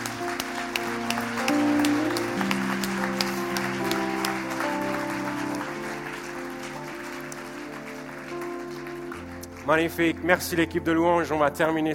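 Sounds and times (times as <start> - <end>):
audience applause: 0.0 - 10.8
speech: 9.7 - 11.9.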